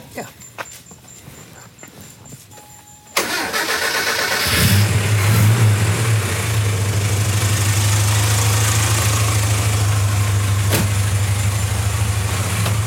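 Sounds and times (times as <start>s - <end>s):
car engine starting and idling: 3.0s - 12.8s.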